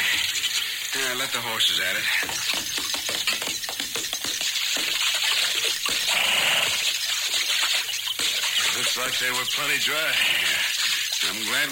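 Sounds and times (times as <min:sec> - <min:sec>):
running water: 0:00.0 - 0:11.6
speech: 0:01.1 - 0:02.8, 0:09.0 - 0:11.6
hammering: 0:02.2 - 0:05.1.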